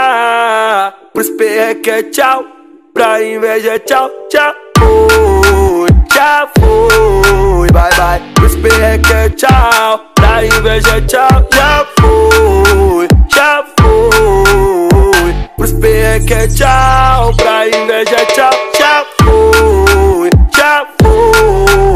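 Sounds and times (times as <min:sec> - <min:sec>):
music: 0:00.0 - 0:21.9.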